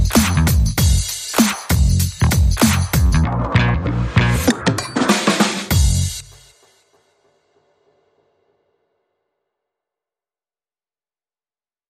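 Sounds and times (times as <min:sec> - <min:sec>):
bass: 0:00.0 - 0:04.7, 0:05.7 - 0:06.3
drums: 0:00.0 - 0:08.7.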